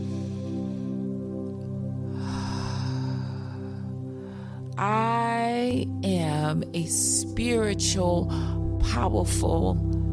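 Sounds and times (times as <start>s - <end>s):
deep breath in during a spiritual empowerment affirmation: 0.0s - 4.8s
speech: 4.8s - 10.0s.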